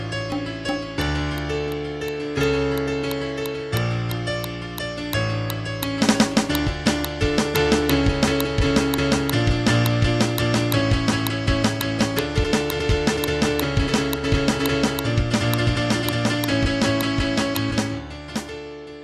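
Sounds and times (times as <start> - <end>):
improvised Halloween music: 0.2 - 18.5.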